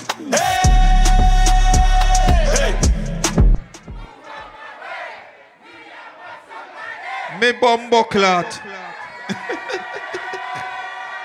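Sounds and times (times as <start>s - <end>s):
crowd yelling at a live dancehall DJ event: 0.2s - 11.2s
heavy booming bass hits: 0.7s - 4.1s
speech: 7.4s - 8.7s
laughter: 7.4s - 11.2s.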